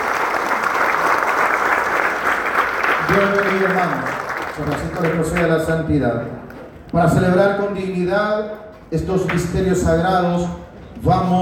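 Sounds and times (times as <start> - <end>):
church congregation applause honouring a group celebrating its anniversary: 0.0 - 5.9
speech: 3.1 - 11.4.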